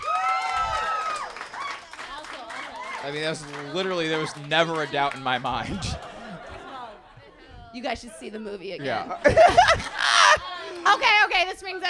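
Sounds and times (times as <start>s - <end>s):
excited voices and whoops: 0.0s - 6.0s, 9.4s - 11.3s
audience clapping: 0.0s - 6.8s, 10.5s - 11.2s
speech: 3.0s - 6.1s, 7.7s - 10.0s, 10.8s - 11.8s
laughter: 3.2s - 11.4s.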